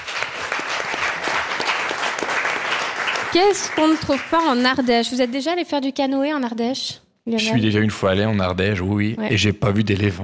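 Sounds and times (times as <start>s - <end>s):
audience applause: 0.0s - 5.4s
speech: 3.3s - 10.2s.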